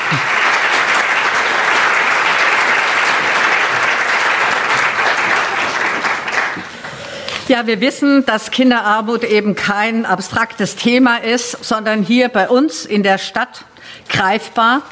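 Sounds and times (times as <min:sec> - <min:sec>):
audience applause from a large crowd: 0:00.0 - 0:07.0
speech: 0:07.5 - 0:14.9.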